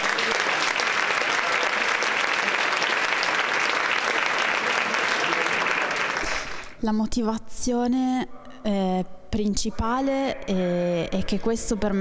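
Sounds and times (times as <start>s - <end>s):
group applause: 0.0s - 6.8s
speech: 6.8s - 11.9s.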